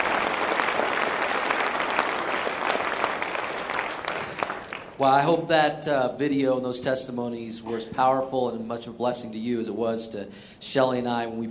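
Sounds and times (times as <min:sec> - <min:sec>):
church congregation applauding to welcome new believers: 0:00.0 - 0:05.0
speech: 0:05.0 - 0:11.4.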